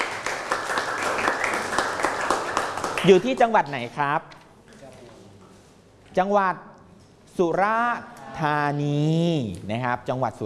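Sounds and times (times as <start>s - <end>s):
students clapping for their classmates: 0.0s - 3.6s
speech: 3.0s - 4.4s, 6.1s - 6.7s, 7.4s - 10.4s.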